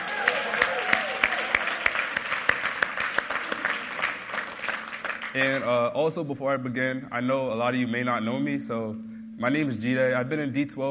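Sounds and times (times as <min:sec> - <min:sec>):
faint voices and whoops: 0:00.0 - 0:01.9
crowd applause: 0:00.0 - 0:05.6
speech: 0:05.4 - 0:10.9.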